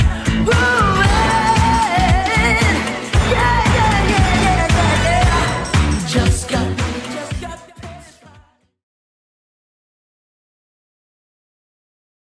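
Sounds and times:
eighties drum machine beat: 0.0s - 8.4s.

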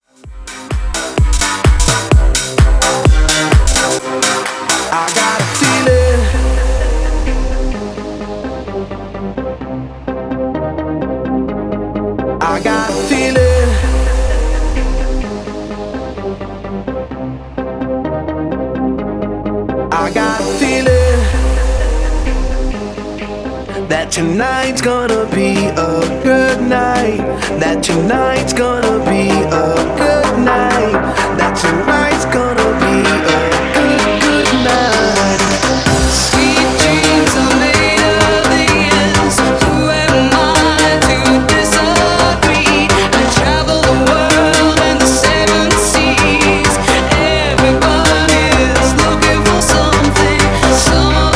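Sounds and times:
festival dance music at 128 bpm: 0.0s - 51.3s.

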